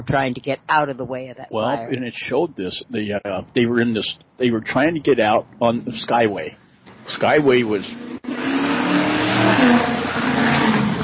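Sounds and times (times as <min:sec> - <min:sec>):
speech: 0:00.0 - 0:08.0
Ford Mustang engine roaring past loudly at speed: 0:06.9 - 0:11.0.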